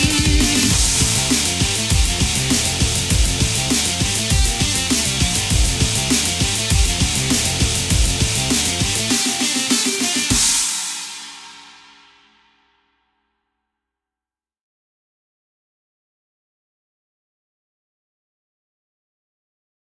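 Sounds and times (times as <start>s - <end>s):
battle music: 0.0s - 12.0s.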